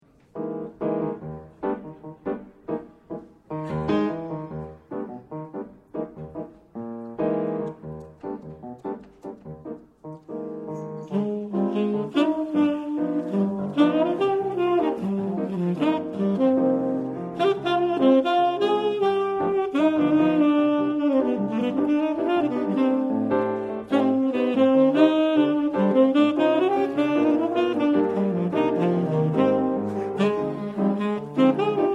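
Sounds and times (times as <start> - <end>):
hard bossa nova music: 0.4 - 31.9.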